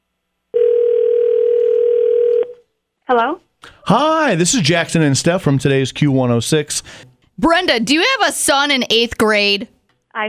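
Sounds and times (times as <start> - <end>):
telephone dial tone during a call: 0.6 - 2.6
speech: 3.1 - 10.2.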